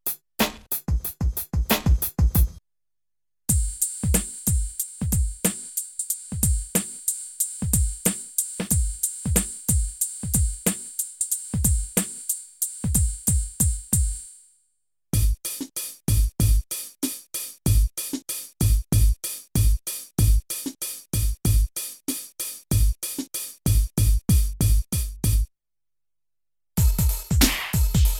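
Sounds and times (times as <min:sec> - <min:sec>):
internal drum machine beats from a sound module: 0:00.0 - 0:02.6, 0:03.5 - 0:14.2, 0:15.2 - 0:25.5, 0:26.8 - 0:28.1.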